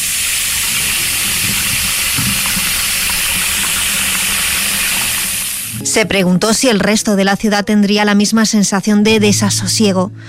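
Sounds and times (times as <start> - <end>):
bathroom tap water running and splashing: 0.0 - 5.8
speech: 6.0 - 10.2.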